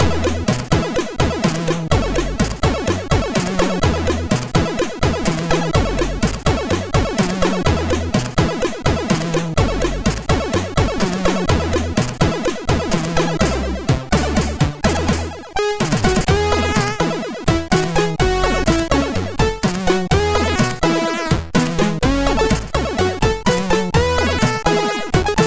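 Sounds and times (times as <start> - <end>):
MOS 6581R2 SID chip music: 0.0 - 25.4.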